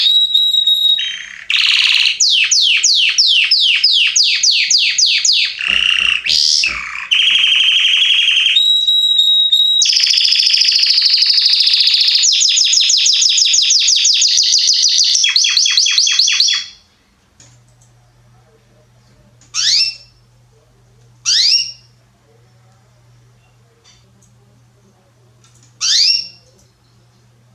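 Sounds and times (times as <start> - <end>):
Belgian canary singing: 0.0 - 16.8, 19.5 - 20.2, 21.2 - 22.0, 25.8 - 26.6
low steady hum: 16.7 - 27.5.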